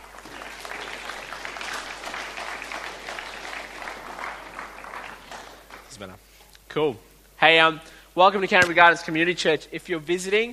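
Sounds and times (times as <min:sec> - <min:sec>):
audience applause: 0:00.0 - 0:05.9
speech: 0:06.0 - 0:10.5.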